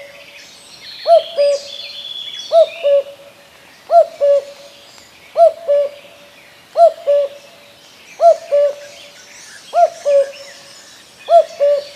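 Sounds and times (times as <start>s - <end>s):
common cuckoo giving two-note cu-coo calls: 1.0s - 3.3s, 3.9s - 4.7s, 5.3s - 6.2s, 6.8s - 7.5s, 8.2s - 11.9s.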